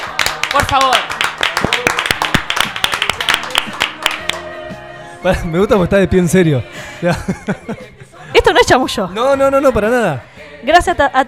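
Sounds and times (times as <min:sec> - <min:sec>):
audience applause: 0:00.0 - 0:04.4
speech: 0:00.5 - 0:01.2, 0:05.2 - 0:11.2
laughter: 0:06.8 - 0:08.7.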